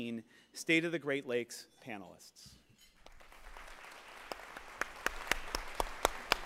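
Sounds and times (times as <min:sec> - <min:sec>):
speech: 0:00.0 - 0:02.6
sharp distinct hand claps: 0:03.0 - 0:06.4.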